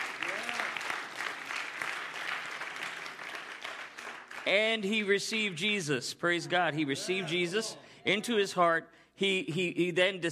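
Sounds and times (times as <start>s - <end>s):
audience hand clapping: 0.0s - 4.9s
speech: 4.5s - 10.3s.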